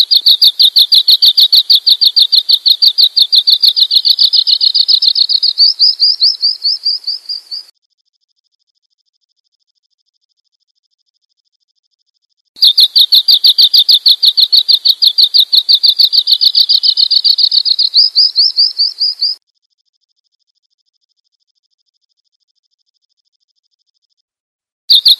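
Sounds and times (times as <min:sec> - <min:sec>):
bird chirping: 0:00.0 - 0:07.7, 0:12.6 - 0:19.4, 0:24.9 - 0:25.1.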